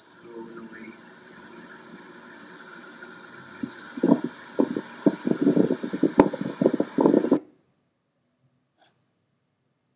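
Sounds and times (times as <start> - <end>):
screaming window air conditioner: 0.0 - 7.4.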